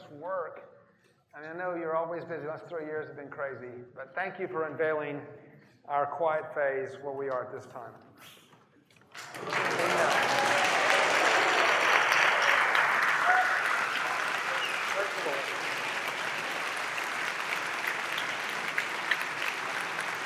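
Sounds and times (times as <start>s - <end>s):
speech: 1.4s - 8.4s, 9.4s - 10.2s
audience clapping: 9.0s - 20.2s
faint cheering: 9.3s - 17.0s.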